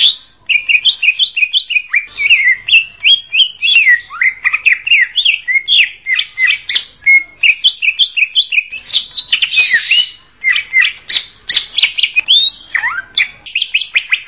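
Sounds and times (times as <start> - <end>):
greater green leafbird singing: 0.0 - 14.2.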